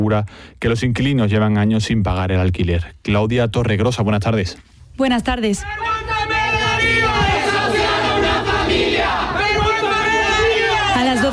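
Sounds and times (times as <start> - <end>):
speech: 0.0 - 7.3
protesters shouting in condemnation: 5.7 - 11.3.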